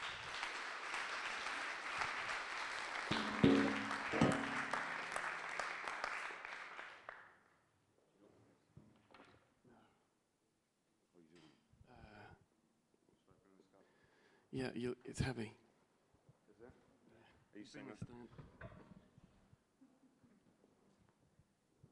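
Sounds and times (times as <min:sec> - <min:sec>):
church audience applause welcoming a speaker: 0:00.0 - 0:07.3
speech: 0:14.6 - 0:15.6, 0:17.6 - 0:18.8.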